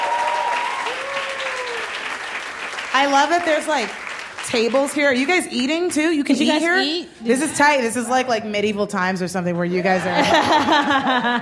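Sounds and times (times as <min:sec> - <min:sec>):
audience applause: 0:00.0 - 0:05.4
speech: 0:03.0 - 0:11.4
laughter: 0:09.8 - 0:11.4.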